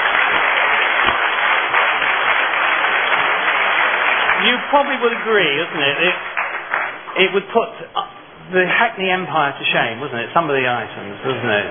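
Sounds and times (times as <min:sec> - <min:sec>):
audience applause for performers: 0:00.0 - 0:07.4
speech: 0:04.5 - 0:06.4, 0:07.2 - 0:11.6.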